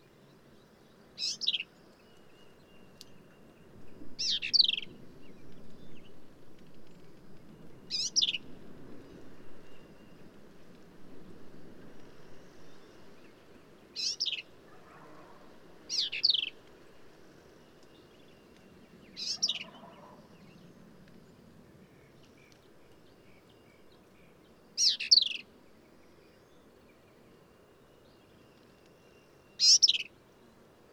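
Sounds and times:
black-capped vireo song: 1.2s - 2.3s, 7.9s - 8.4s, 14.0s - 16.5s, 19.1s - 20.4s, 24.8s - 25.4s, 29.5s - 30.1s.

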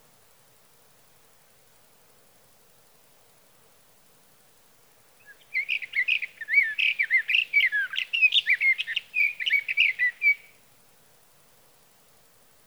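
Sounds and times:
sage thrasher song: 5.2s - 10.5s.

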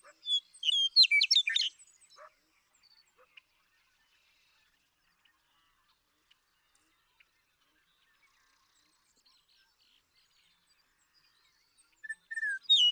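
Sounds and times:
Western meadowlark singing: 0.2s - 1.8s, 12.0s - 12.9s.

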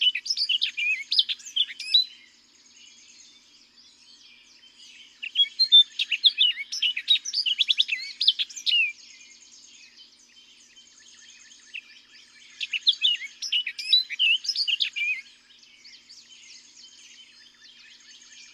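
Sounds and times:
Orchard Oriole singing: 0.0s - 18.5s.

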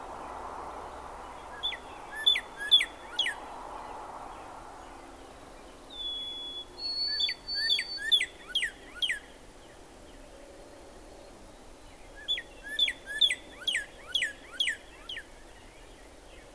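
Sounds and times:
Northern cardinal song of sharp slurred whistles: 1.5s - 3.4s, 5.9s - 9.3s, 12.2s - 14.8s.

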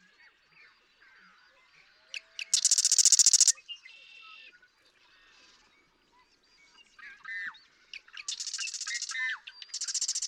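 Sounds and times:
Marsh Wren song: 2.4s - 3.6s, 8.2s - 10.2s.

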